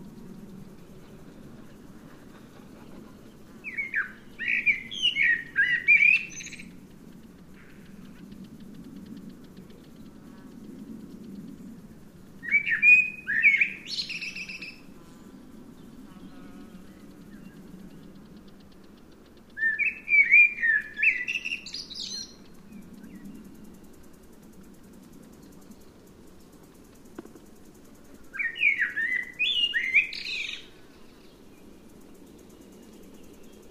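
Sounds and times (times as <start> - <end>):
low background hum: 0.0 - 33.6
Eurasian blackbird singing: 3.6 - 6.7, 12.4 - 14.9, 19.5 - 23.3, 28.3 - 31.4.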